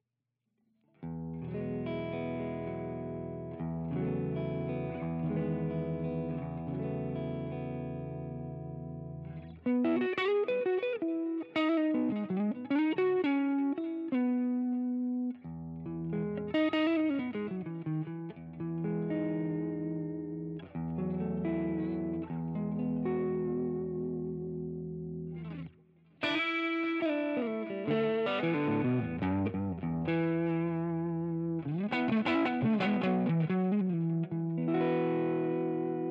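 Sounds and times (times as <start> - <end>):
Line 6 Catalyst amp chime tone DI out: 1.0 - 36.0.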